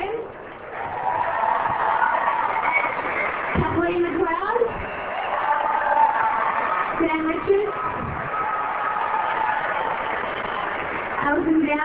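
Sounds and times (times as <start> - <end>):
audience applause: 0.6 - 11.8.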